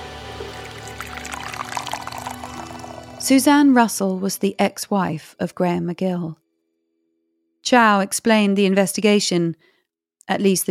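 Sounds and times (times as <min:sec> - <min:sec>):
water poured from a boiled kettle: 0:00.3 - 0:03.5
speech: 0:03.3 - 0:06.4, 0:07.6 - 0:09.7, 0:10.3 - 0:10.6.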